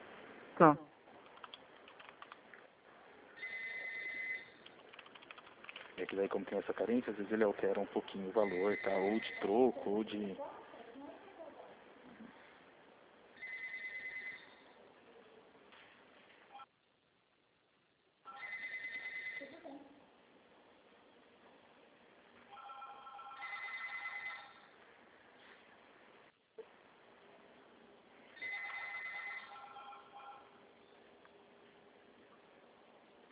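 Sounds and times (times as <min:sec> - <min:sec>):
speech: 0:00.6 - 0:00.9, 0:06.1 - 0:10.6
telephone ringing: 0:03.4 - 0:04.6, 0:08.4 - 0:09.7, 0:13.4 - 0:14.7, 0:18.3 - 0:19.6, 0:22.5 - 0:24.8, 0:28.4 - 0:30.6.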